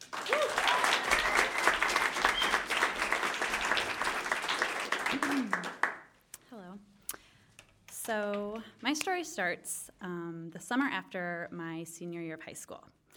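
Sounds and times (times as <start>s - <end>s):
audience applause welcoming a storyteller: 0.0s - 6.1s
vocal whoops: 0.2s - 2.7s
speech: 5.1s - 5.7s, 8.1s - 13.0s.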